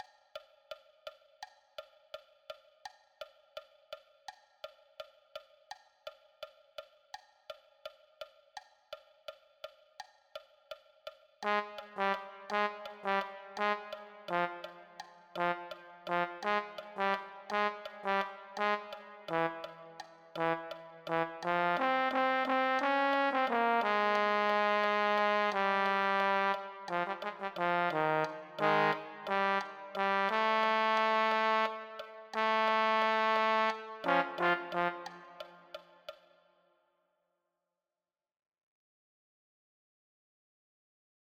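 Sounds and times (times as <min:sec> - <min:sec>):
low brass: 0:11.4 - 0:35.8.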